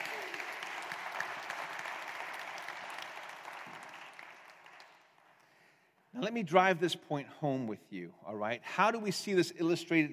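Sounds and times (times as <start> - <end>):
crowd clapping: 0.0 - 6.0
speech: 6.2 - 10.1.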